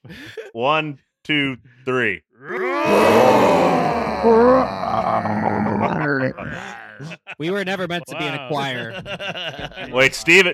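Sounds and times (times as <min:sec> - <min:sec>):
speech: 0:00.1 - 0:10.5
people imitating lion roars: 0:02.4 - 0:07.4
laughter: 0:04.2 - 0:10.5.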